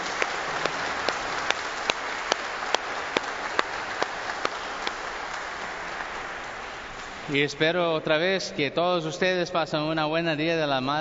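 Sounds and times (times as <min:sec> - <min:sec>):
audience applause: 0:00.0 - 0:07.4
speech: 0:07.3 - 0:10.9.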